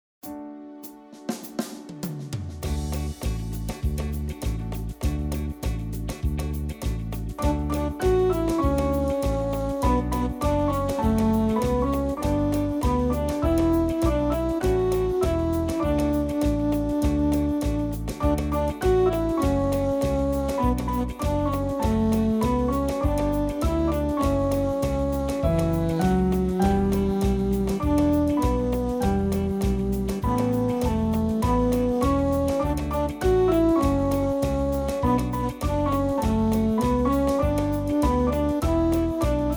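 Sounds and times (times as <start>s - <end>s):
samba music: 0.2s - 39.5s.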